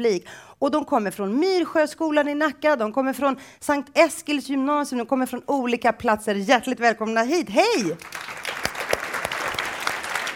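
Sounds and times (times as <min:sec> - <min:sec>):
speech: 0:00.0 - 0:08.6
applause from a live audience of school students: 0:08.0 - 0:10.3.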